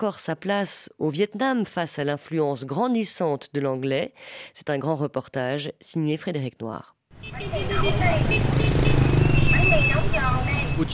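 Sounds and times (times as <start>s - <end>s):
speech: 0.0s - 8.8s, 9.7s - 10.9s
high-pitched horn honks: 7.2s - 10.9s
motorbike engines rumbling in busy street traffic: 7.2s - 10.9s.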